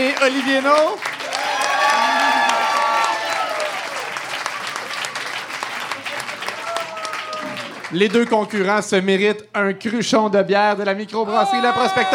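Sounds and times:
speech: 0:00.0 - 0:01.1, 0:07.9 - 0:12.1
audience applause: 0:00.0 - 0:08.8
audience cheering and whistling: 0:01.2 - 0:05.1, 0:06.6 - 0:07.8
people shouting: 0:01.4 - 0:04.0, 0:11.3 - 0:12.1.

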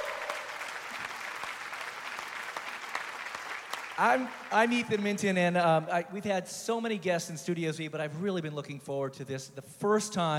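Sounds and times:
audience applause: 0:00.0 - 0:05.1
speech: 0:04.0 - 0:10.3.

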